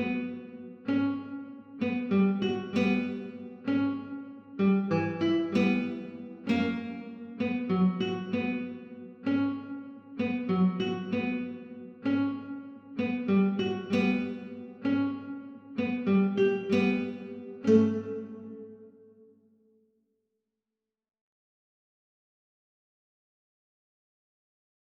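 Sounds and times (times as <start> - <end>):
guitar: 0.0 - 19.3.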